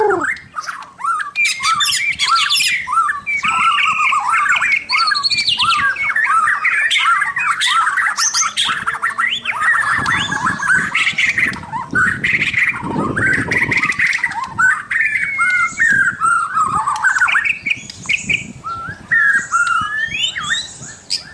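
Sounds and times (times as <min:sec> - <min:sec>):
White-rumped shama pouring out quick chattering and whistled phrases: 0:00.0 - 0:21.3.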